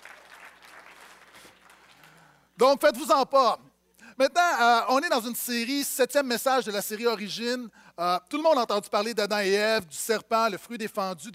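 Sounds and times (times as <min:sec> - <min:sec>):
audience applauding: 0:00.0 - 0:02.3
speech: 0:02.6 - 0:11.3.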